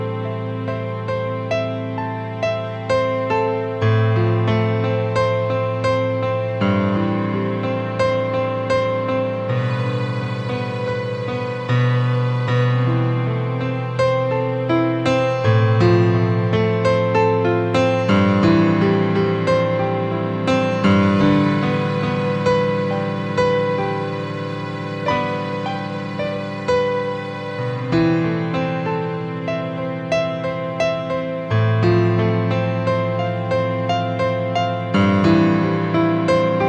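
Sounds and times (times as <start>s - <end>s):
piano: 0.0s - 36.6s.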